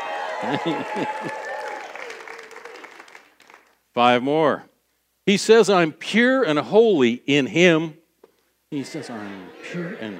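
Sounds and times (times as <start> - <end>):
audience cheering and whooping: 0.0 - 3.1
audience applauding: 0.0 - 3.8
laughter: 0.2 - 1.6, 8.8 - 10.1
speech: 0.4 - 1.5, 4.0 - 4.7, 5.3 - 8.0, 8.7 - 10.1.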